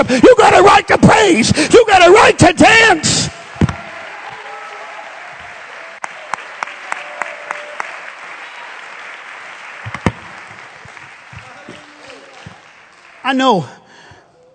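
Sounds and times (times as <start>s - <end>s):
speech: 0.0s - 3.4s, 13.3s - 13.8s
crowd clapping: 3.3s - 13.9s.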